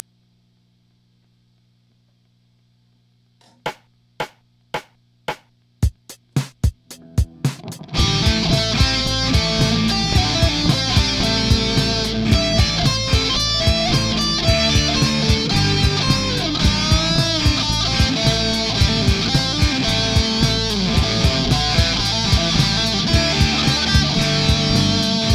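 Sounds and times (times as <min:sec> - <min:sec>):
metal music solo: 0:06.9 - 0:25.3.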